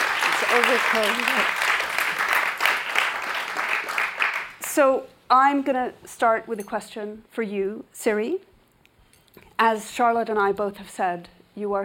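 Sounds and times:
audience applause: 0.0 - 4.6
speech: 0.5 - 1.7, 4.8 - 8.5, 9.6 - 11.8.

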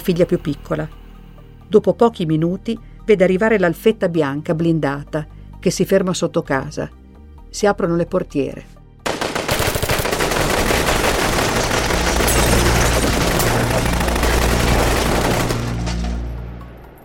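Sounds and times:
speech: 0.0 - 1.0, 1.7 - 8.8
burst of automatic military gunfire: 9.1 - 15.9.

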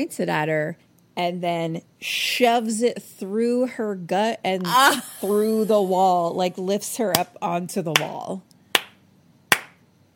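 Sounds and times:
speech: 0.0 - 8.5
slow clap: 8.8 - 9.8.

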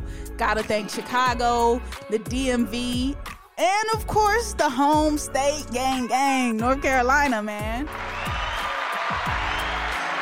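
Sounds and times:
speech: 0.3 - 8.4
applause: 7.9 - 10.2.

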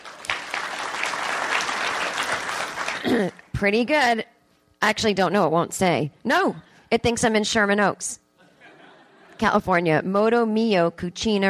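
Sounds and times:
audience applause: 0.0 - 3.2
speech: 3.0 - 8.2, 9.4 - 11.4
laughter: 8.4 - 9.4.

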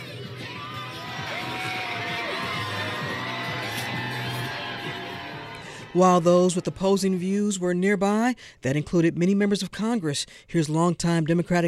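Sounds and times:
abortion rights opponents cheering outside the Supreme Court: 0.0 - 7.8
speech: 6.0 - 11.6.

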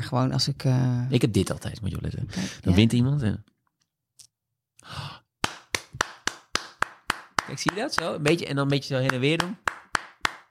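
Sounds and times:
speech: 0.1 - 3.5, 7.5 - 9.8
hands clapping: 5.4 - 10.4.

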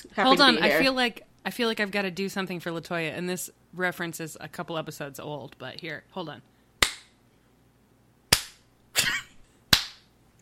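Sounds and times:
speech: 0.1 - 6.5
slow hand claps: 6.8 - 7.2, 8.3 - 8.6, 9.7 - 10.1.

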